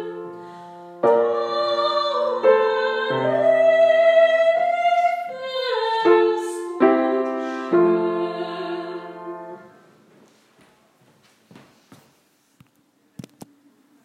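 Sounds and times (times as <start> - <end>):
soprano voice: 0.0 - 9.8.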